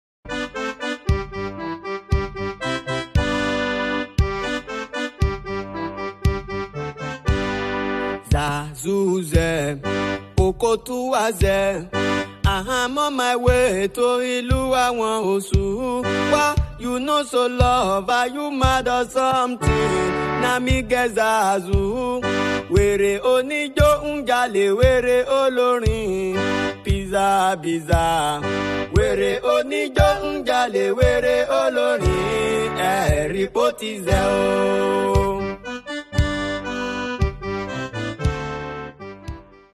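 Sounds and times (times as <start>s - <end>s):
accordion: 0.3s - 39.7s.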